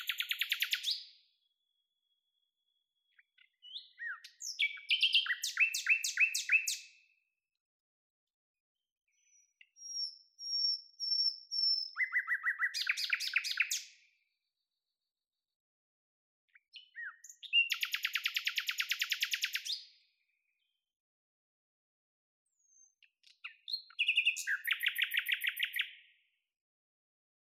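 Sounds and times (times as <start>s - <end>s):
common nightingale singing: 0.0s - 1.2s, 3.1s - 7.0s, 9.2s - 14.0s, 16.6s - 19.9s, 22.6s - 26.1s.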